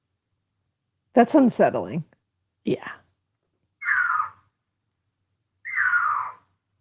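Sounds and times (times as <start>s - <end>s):
speech: 1.2s - 3.0s
mountain lion scream: 3.8s - 4.4s, 5.6s - 6.5s.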